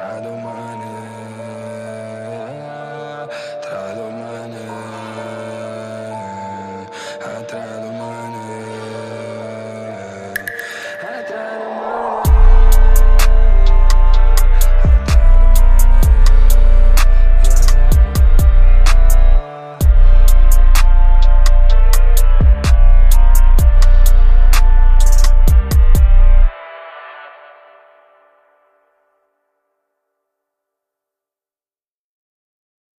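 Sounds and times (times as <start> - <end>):
deep bass: 12.0 - 26.5.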